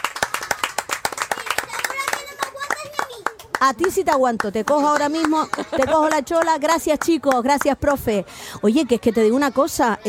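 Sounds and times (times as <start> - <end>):
audience applause: 0.0 - 3.6
speech: 3.6 - 10.0.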